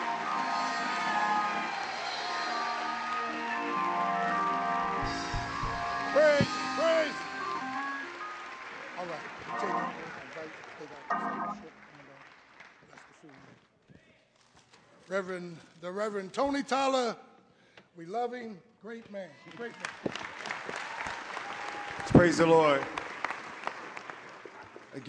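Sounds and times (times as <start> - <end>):
audience applause: 0.0 - 13.5, 19.5 - 25.0
speech: 15.2 - 17.2, 18.0 - 20.0, 22.1 - 23.0.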